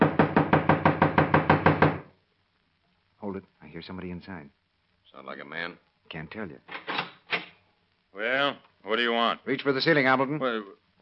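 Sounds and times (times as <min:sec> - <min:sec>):
knocking on a wooden door: 0:00.0 - 0:02.1
speech: 0:03.4 - 0:06.8, 0:08.2 - 0:10.8.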